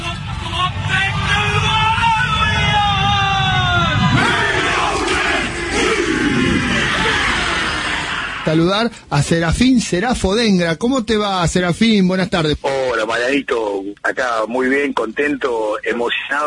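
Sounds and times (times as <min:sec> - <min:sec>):
crowd of voices roaring a rallying cheer: 0:00.1 - 0:08.5
speech: 0:08.5 - 0:16.4.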